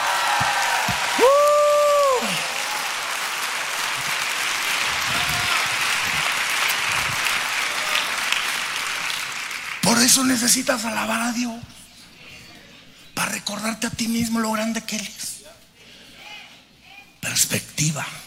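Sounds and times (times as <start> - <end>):
crowd applauding loudly: 0.0 - 10.9
speech: 10.1 - 11.8, 13.5 - 15.3, 17.4 - 18.2.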